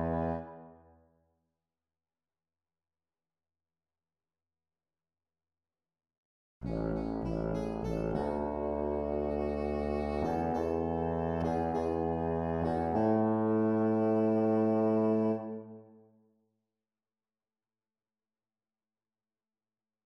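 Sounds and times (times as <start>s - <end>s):
slide trombone: 0.0s - 0.6s, 6.7s - 15.6s.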